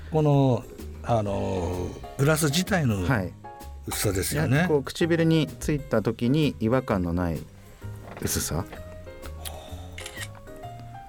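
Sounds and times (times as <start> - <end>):
speech: 0.1 - 7.5, 8.2 - 8.8
camera shutter clicks taking a photo: 9.3 - 10.4.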